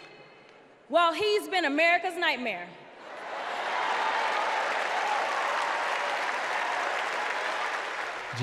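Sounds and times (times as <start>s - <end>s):
speech: 0.9s - 2.8s
wild sustained applause: 3.5s - 8.3s.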